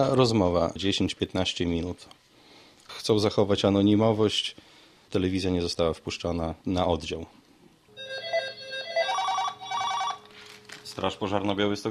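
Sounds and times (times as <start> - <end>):
speech: 0.0 - 2.2, 2.9 - 7.4, 11.0 - 11.8
telephone ringing at fire station desk: 7.9 - 10.8.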